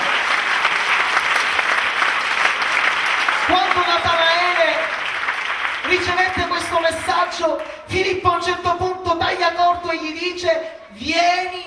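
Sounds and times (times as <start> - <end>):
audience applauding: 0.0 - 7.8
speech: 6.8 - 11.6.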